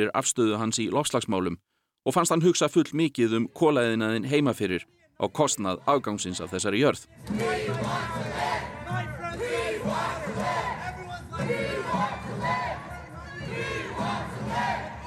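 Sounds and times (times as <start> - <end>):
speech: 0.0 - 9.1
crowd of protesters chanting a slogan in unison: 5.7 - 15.0.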